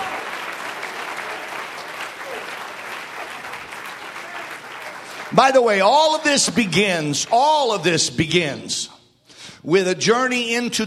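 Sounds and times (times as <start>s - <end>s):
audience clapping hands: 0.0s - 7.9s
speech: 5.3s - 9.0s, 9.6s - 10.8s.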